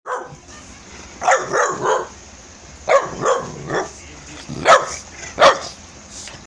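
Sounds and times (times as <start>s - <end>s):
boxer dog barking: 0.1s - 0.4s, 1.2s - 2.2s, 2.9s - 4.0s, 4.6s - 5.8s.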